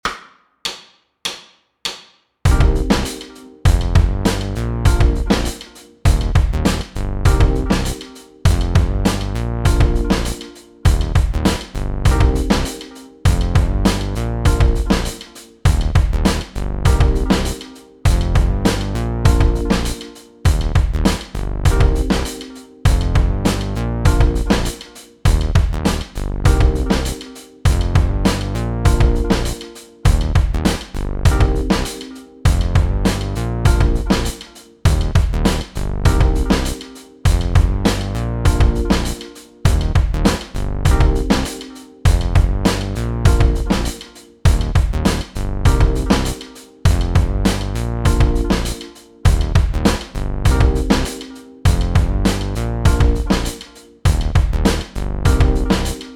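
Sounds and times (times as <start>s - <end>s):
backing track in C: 2.5s - 56.1s.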